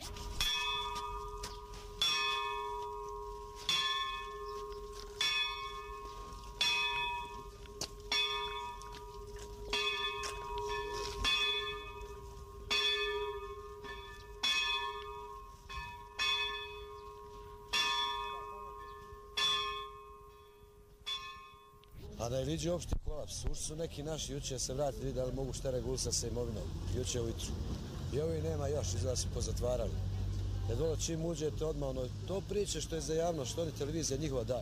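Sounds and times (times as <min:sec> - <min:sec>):
church bell ringing: 0:00.0 - 0:21.9
speech: 0:22.3 - 0:30.1, 0:30.7 - 0:34.6.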